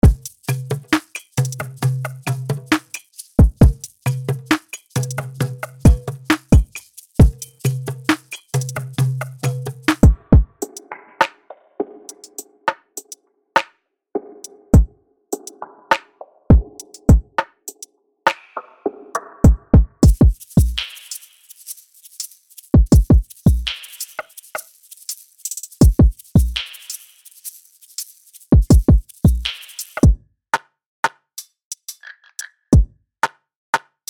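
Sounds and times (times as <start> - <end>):
drums: 0.0 - 11.5, 14.7 - 18.7, 19.4 - 21.3, 22.8 - 24.3, 25.6 - 27.0, 28.5 - 30.2.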